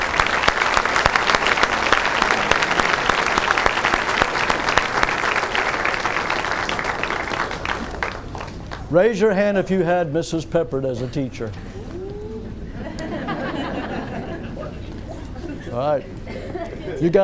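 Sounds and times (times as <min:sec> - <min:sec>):
audience applause: 0:00.0 - 0:08.9
speech: 0:08.9 - 0:11.7, 0:15.7 - 0:17.2
laughter: 0:12.7 - 0:17.2.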